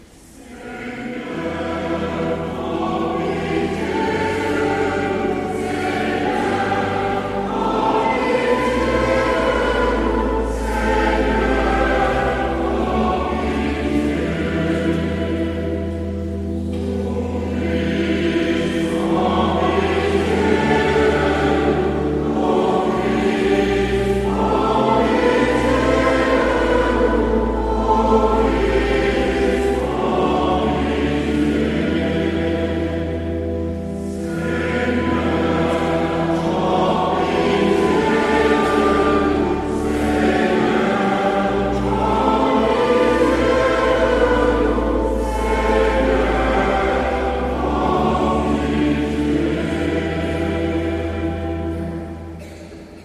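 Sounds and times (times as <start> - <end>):
organ mass playing tutti: 0.4 - 52.4.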